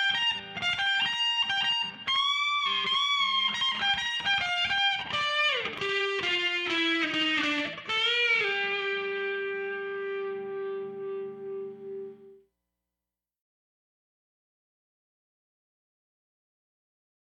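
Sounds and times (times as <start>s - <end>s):
Carolina blues lead guitar: 0.0s - 12.4s.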